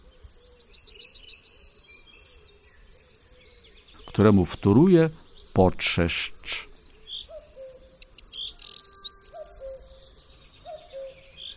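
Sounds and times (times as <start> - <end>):
yellowhammer song: 0.0 - 4.2, 6.8 - 11.5
steady high-pitched insect chorus: 0.0 - 11.5
speech: 4.2 - 6.4.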